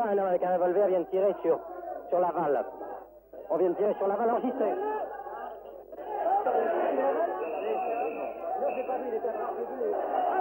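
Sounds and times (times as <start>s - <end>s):
speech: 0.0s - 2.9s, 3.5s - 5.0s
angry crowd shouting: 4.0s - 10.3s.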